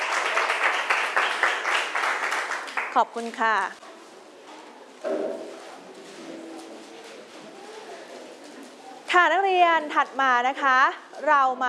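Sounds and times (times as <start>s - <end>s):
students clapping: 0.0s - 3.0s
speech: 2.9s - 3.8s, 5.0s - 5.4s, 9.1s - 11.6s.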